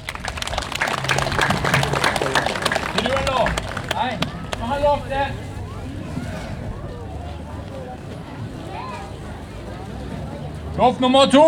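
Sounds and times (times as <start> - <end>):
applause: 0.0 - 5.0
laughter: 0.0 - 10.4
faint voice or cheer: 0.0 - 10.7
speech: 4.0 - 5.5, 10.8 - 11.4.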